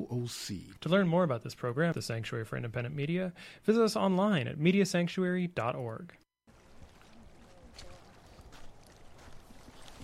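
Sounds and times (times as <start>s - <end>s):
speech: 0.0s - 6.2s
rain picked up by a hydrophone in the water: 6.5s - 10.0s.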